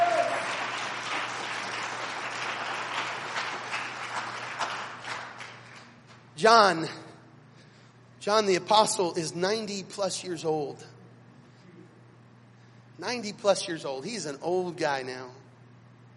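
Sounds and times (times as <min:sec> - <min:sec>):
audience clapping hands: 0:00.0 - 0:06.3
speech: 0:06.4 - 0:07.0, 0:08.2 - 0:11.0, 0:13.0 - 0:15.4.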